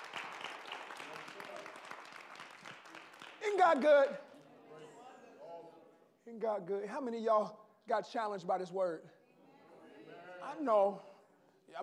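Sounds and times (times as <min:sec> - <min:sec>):
audience clapping: 0:00.0 - 0:04.2
speech: 0:03.6 - 0:04.3, 0:06.3 - 0:09.2, 0:10.5 - 0:11.1.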